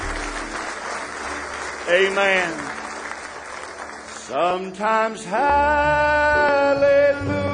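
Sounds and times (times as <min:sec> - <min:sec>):
audience applause: 0:00.0 - 0:04.8
speech: 0:01.9 - 0:02.8, 0:04.3 - 0:07.4.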